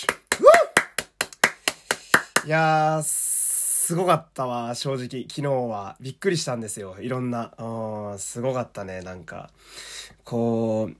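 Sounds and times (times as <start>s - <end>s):
hands clapping in applause: 0.0s - 2.6s
speech: 2.4s - 3.2s, 3.9s - 10.9s.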